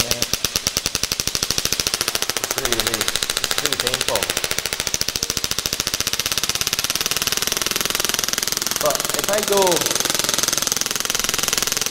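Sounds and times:
shockwave therapy device rapidly pulsing on back: 0:00.0 - 0:11.8
speech: 0:08.8 - 0:10.0.

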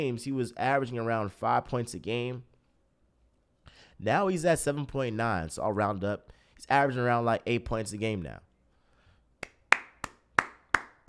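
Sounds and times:
speech: 0:00.0 - 0:02.5, 0:04.0 - 0:08.5
hand clapping: 0:09.4 - 0:11.0.

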